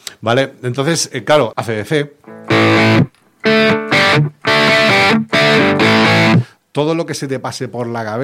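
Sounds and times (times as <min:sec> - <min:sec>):
speech: 0:00.2 - 0:04.4, 0:06.8 - 0:08.2
overdriven electric guitar chords through an amplifier: 0:02.2 - 0:06.5.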